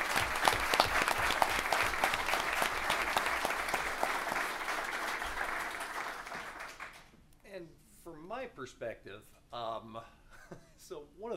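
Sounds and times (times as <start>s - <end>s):
audience round of applause: 0.0s - 7.1s
speech: 8.6s - 11.3s.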